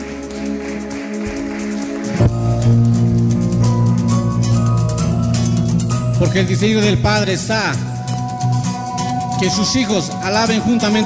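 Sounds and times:
audience applauding: 0.0 - 4.6
sustained keyboard chords: 0.0 - 11.0
speech: 6.2 - 7.9, 9.4 - 11.0.

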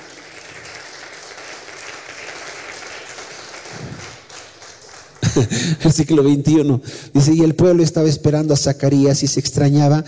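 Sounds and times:
loud audience applause: 0.0 - 5.8
speech: 5.4 - 10.0.

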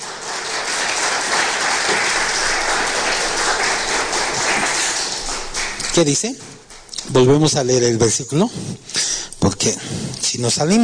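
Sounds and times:
audience applauding: 0.0 - 7.4
speech: 6.0 - 10.8.

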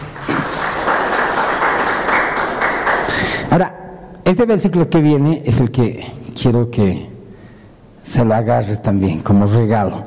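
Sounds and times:
crowd applauding: 0.0 - 3.5
speech: 3.5 - 7.1, 8.0 - 10.0.

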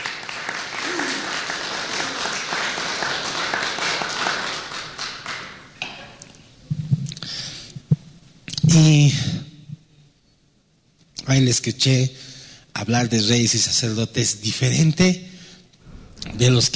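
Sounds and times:
audience applause: 0.0 - 5.7
speech: 8.7 - 9.3, 11.3 - 12.2, 12.8 - 15.3, 16.4 - 16.7.

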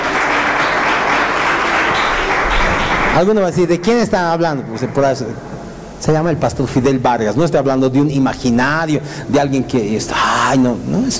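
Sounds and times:
audience applause: 0.0 - 3.9
speech: 3.2 - 11.1.

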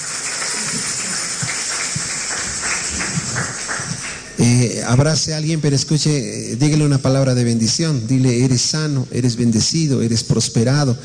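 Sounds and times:
crowd clapping: 0.0 - 4.4
speech: 4.4 - 11.0.

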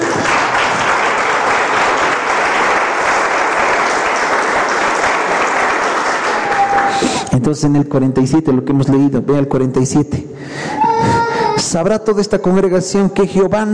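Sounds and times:
audience applauding loudly: 0.0 - 7.4
speech: 7.4 - 13.7.

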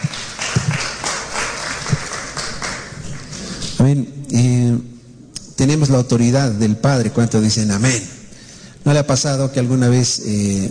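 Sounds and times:
audience applauding: 0.0 - 3.8
speech: 3.8 - 4.5, 5.7 - 8.2, 8.8 - 10.6.

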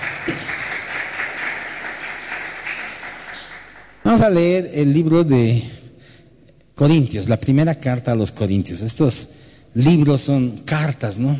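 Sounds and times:
audience applause: 0.0 - 4.0
speech: 4.1 - 5.8, 6.8 - 11.3.

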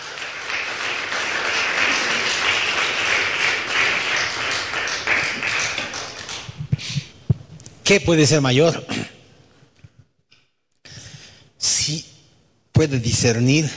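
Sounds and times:
audience applause: 0.0 - 6.8
speech: 7.9 - 8.9, 12.8 - 13.7.

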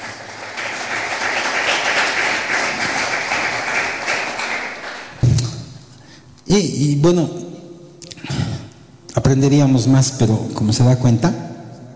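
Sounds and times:
audience applause: 0.0 - 5.2
speech: 6.5 - 7.4, 9.3 - 11.5.

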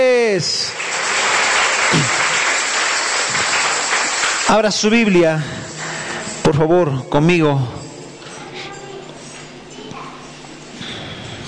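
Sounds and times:
audience applauding: 0.0 - 6.4
speech: 4.5 - 5.8, 6.5 - 7.8.

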